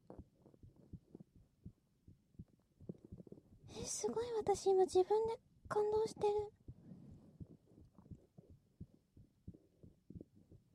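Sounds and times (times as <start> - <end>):
heartbeat heard through a stethoscope: 0.0 - 3.9, 6.5 - 10.7
speech: 3.7 - 6.6.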